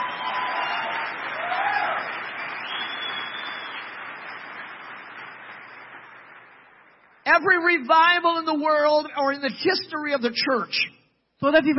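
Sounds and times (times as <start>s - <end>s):
crowd clapping: 0.0s - 7.3s
speech: 7.3s - 11.7s.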